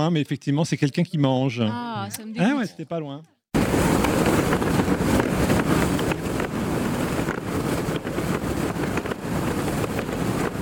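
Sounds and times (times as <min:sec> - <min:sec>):
speech: 0:00.0 - 0:03.4
wind in a boat's sails: 0:03.6 - 0:10.5.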